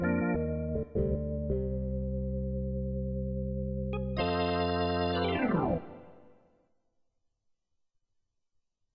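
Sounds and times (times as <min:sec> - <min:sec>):
Hammond B3 organ chords: 0:00.0 - 0:06.4.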